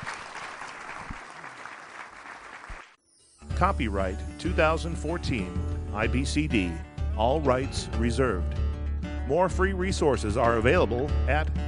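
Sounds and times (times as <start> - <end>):
audience applause: 0.0 - 3.0
speech: 3.6 - 8.6, 9.3 - 11.6.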